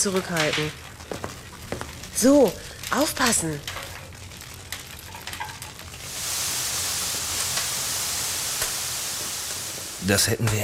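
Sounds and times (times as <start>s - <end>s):
speech: 0.0s - 1.2s, 2.2s - 3.7s, 10.0s - 10.6s
faint clicks and taps: 0.0s - 5.8s
molten metal sizzling poured into a casting mold: 0.0s - 10.6s.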